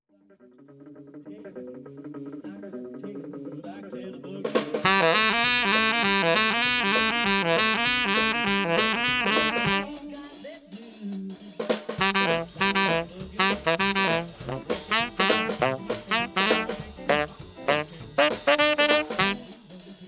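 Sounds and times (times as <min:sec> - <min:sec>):
saxophone compressed with LA-2A: 0:04.8 - 0:10.0, 0:12.0 - 0:19.5.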